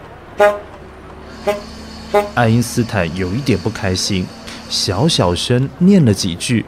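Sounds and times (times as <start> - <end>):
car horn honking: 0.3 - 5.4
speech: 0.4 - 0.7, 1.4 - 6.6.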